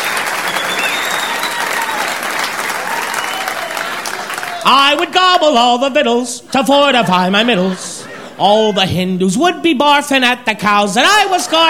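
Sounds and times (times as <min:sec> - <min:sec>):
faint cheers and whistles: 0:00.0 - 0:04.7
audience applause: 0:00.0 - 0:05.0
speech: 0:04.7 - 0:11.6
laughter: 0:06.4 - 0:09.6, 0:10.7 - 0:11.6.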